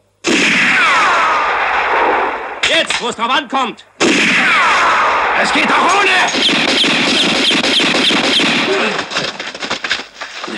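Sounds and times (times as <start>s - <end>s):
pistol gunfire in a film's final shootout at a cemetery: 0.2s - 3.1s, 4.0s - 9.2s
speech: 3.0s - 9.3s.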